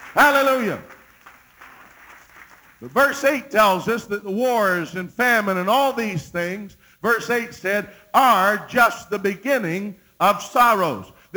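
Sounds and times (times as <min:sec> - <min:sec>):
audience clapping hands: 0:00.0 - 0:03.4
speech: 0:00.1 - 0:01.0, 0:02.8 - 0:11.3.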